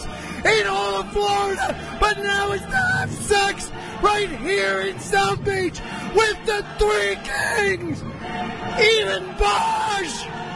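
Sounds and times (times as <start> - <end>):
man yelling and bellowing excitedly as he is introduced: 0.4 - 7.9, 8.8 - 10.3
speech: 0.4 - 10.4.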